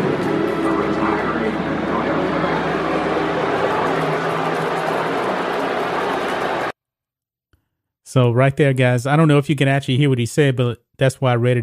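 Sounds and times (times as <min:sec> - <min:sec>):
stadium crowd booing: 0:00.0 - 0:06.7
speech: 0:08.1 - 0:11.6.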